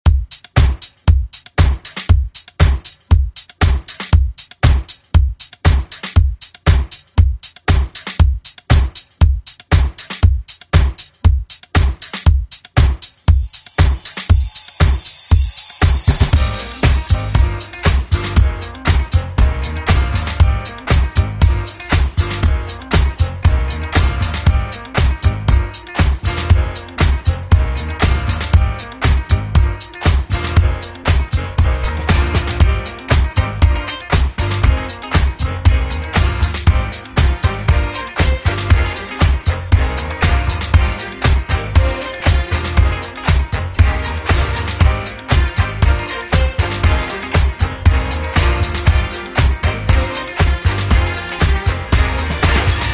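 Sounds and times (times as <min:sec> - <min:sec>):
1970s drum beat: 0:00.0 - 0:52.9.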